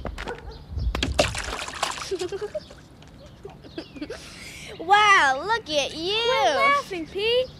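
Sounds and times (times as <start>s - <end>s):
child jumping into a mud puddle and splashing: 1.0s - 2.5s
water dribbling and sloshing: 1.0s - 3.0s
speech: 2.2s - 2.9s, 3.8s - 7.5s.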